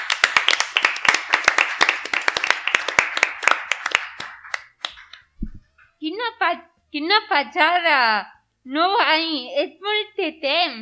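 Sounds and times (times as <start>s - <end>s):
crowd applauding: 0.0s - 5.2s
speech: 6.1s - 10.7s.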